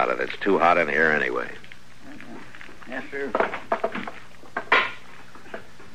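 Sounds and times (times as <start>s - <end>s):
speech: 0.0s - 1.6s, 2.9s - 3.6s
too-big stick of wood banging against a hot stove: 3.3s - 5.7s.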